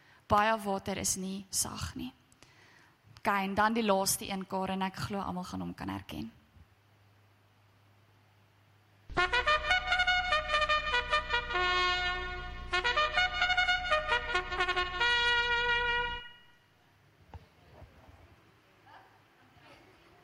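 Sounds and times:
speech: 0.3s - 2.2s, 3.2s - 6.4s
trumpet blaring a loud bright call: 9.1s - 16.6s.

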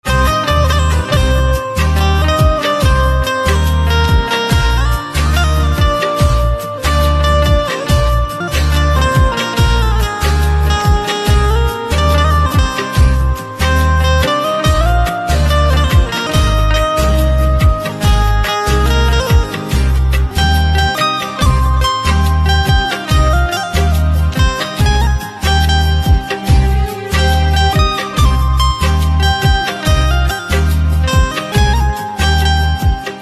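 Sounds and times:
banjo instrumental ringtone: 0.1s - 33.2s.

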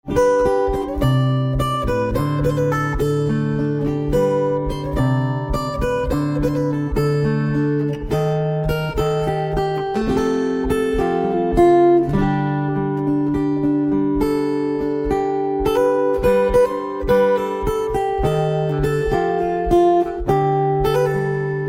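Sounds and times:
guitar: 0.0s - 21.6s.

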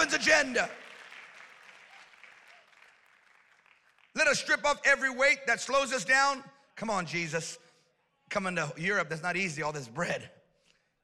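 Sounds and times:
speech: 0.0s - 0.8s, 4.2s - 7.6s, 8.3s - 10.4s
audience clapping: 0.0s - 4.7s.

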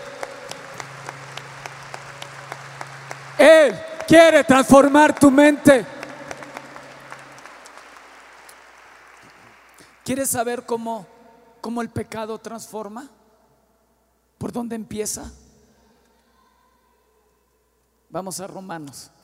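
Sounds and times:
crowd shouting and cheering: 0.0s - 8.2s
audience applause: 0.0s - 10.0s
speech: 3.4s - 5.9s, 10.1s - 13.2s, 14.5s - 15.4s, 18.1s - 19.2s.

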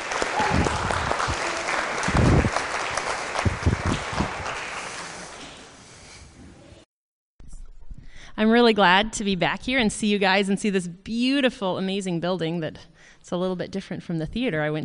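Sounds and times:
audience applause welcoming two guests in a large building: 0.0s - 5.8s
speech: 8.4s - 14.8s.

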